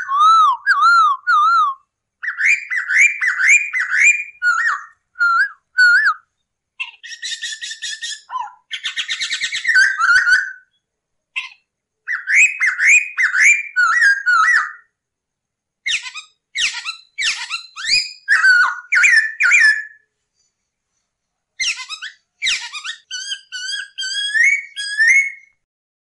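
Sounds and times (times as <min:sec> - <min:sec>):
masked laughingthrush song: 0:00.0 - 0:10.7, 0:11.4 - 0:14.9, 0:15.9 - 0:20.0, 0:21.6 - 0:25.6.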